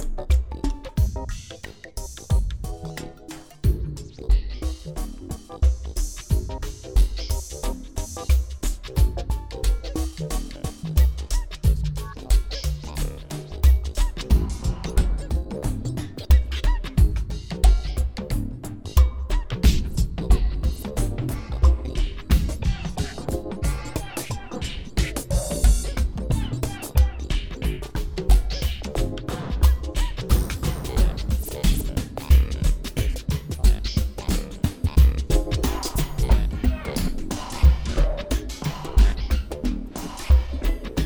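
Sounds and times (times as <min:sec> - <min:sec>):
burping groove: 0:00.0 - 0:41.0.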